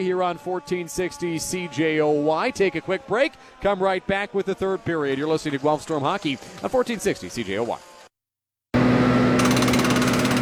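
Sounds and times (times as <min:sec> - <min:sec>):
speech: 0:00.0 - 0:07.9
construction jackhammer pounding: 0:05.1 - 0:06.8, 0:09.4 - 0:10.3.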